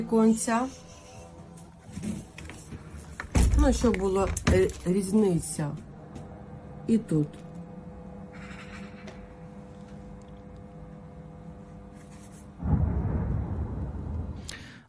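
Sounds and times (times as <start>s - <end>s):
speech: 0.0s - 1.0s, 3.6s - 5.9s, 6.9s - 7.5s
explosion: 12.6s - 14.8s.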